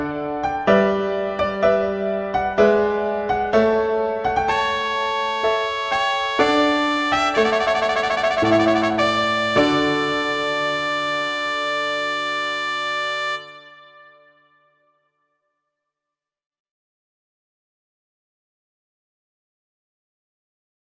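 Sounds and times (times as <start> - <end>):
largo classical piece: 0.0 - 14.5.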